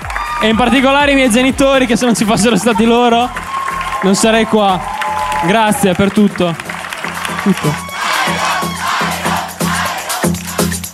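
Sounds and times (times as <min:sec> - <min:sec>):
audience ovation and cheering: 0:00.0 - 0:10.8
speech: 0:00.4 - 0:06.6, 0:07.4 - 0:08.5
crowd chant-like pulses: 0:07.4 - 0:10.8.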